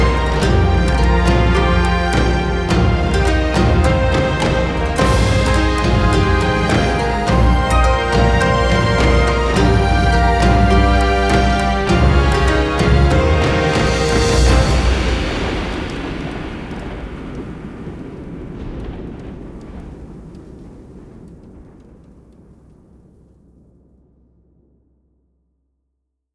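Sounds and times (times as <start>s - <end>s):
orchestral music: 0.0s - 16.6s.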